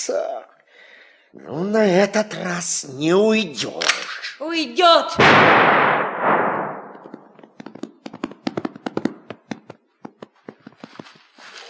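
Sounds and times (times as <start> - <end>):
speech: 0.0 - 0.6, 1.3 - 6.2
gunshots in a radio drama: 5.2 - 7.6.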